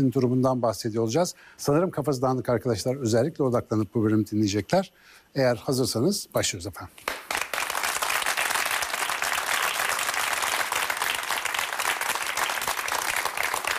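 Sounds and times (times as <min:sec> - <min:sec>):
speech: 0:00.0 - 0:07.3
audience clapping: 0:07.0 - 0:13.7.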